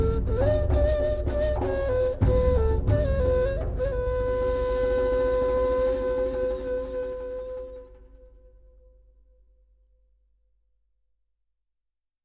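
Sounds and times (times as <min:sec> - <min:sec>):
Sufi house music: 0:00.0 - 0:08.0.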